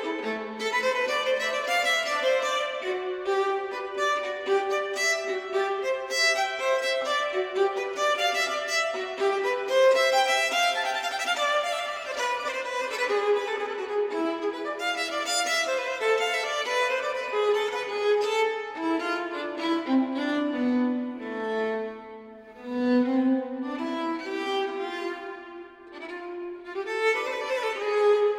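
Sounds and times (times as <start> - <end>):
improvised violin fantasia: 0.0 - 28.3.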